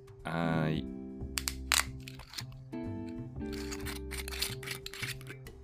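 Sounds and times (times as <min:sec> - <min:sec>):
speech: 0:00.2 - 0:01.0
opening a new bottle of red wine: 0:01.4 - 0:02.6, 0:03.5 - 0:05.5.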